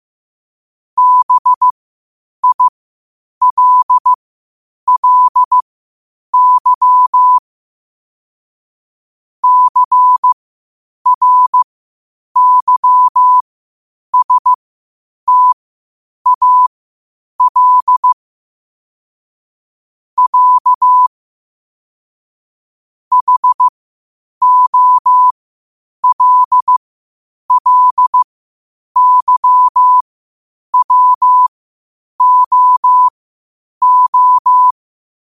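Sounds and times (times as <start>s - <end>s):
morse code at 5 wpm: 1.0s - 1.7s, 2.4s - 2.7s, 3.4s - 4.1s, 4.9s - 5.6s, 6.4s - 7.4s, 9.4s - 10.4s, 11.1s - 11.6s, 12.4s - 13.4s, 14.2s - 14.6s, 15.3s - 15.6s, 16.3s - 16.7s, 17.4s - 18.2s, 20.2s - 21.1s, 23.1s - 23.7s, 24.4s - 25.3s, 26.0s - 26.8s, 27.5s - 28.3s, 29.0s - 30.0s, 30.8s - 31.5s, 32.2s - 33.1s, 33.8s - 34.8s.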